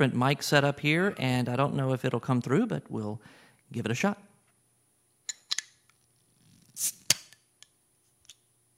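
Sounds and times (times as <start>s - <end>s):
speech: 0.0s - 4.3s, 6.8s - 7.0s
beer bottle being opened: 5.3s - 7.4s.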